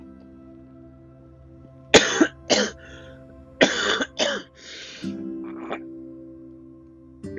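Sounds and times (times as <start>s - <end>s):
coughing from a person ill with an upset stomach: 1.9s - 2.9s, 3.6s - 5.8s.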